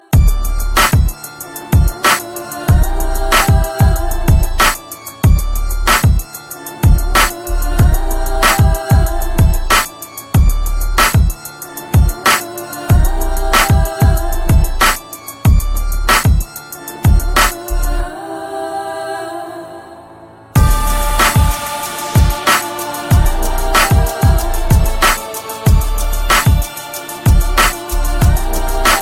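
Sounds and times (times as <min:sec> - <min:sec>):
gangsta beat: 0:00.2 - 0:17.9, 0:20.6 - 0:29.0.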